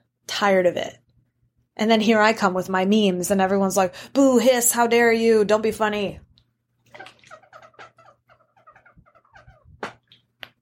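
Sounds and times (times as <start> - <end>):
speech: 0.4 - 1.0, 1.8 - 6.3
broken water bottle squeaking and gurgling: 6.8 - 10.4.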